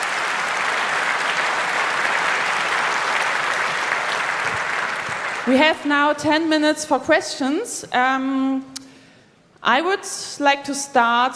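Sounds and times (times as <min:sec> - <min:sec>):
audience applause: 0:00.0 - 0:05.9
speech: 0:05.5 - 0:08.7, 0:09.6 - 0:11.3.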